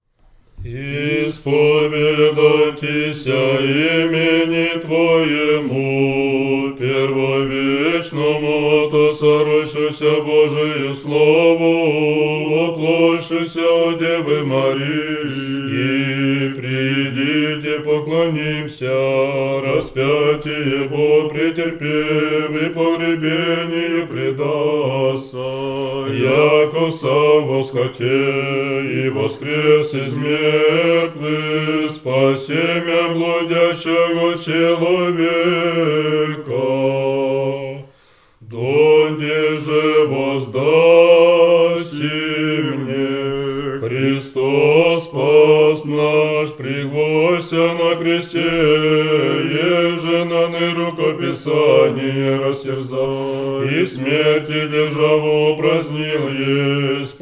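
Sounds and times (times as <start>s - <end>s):
resurrectional chant tone: 0.2s - 57.2s.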